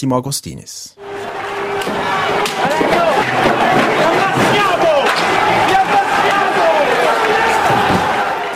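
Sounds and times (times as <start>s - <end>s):
dense crowd yelling at a street protest: 1.0s - 8.5s
protester shouting at a street protest: 1.0s - 8.5s
scattered thuds and bangs: 1.7s - 8.5s.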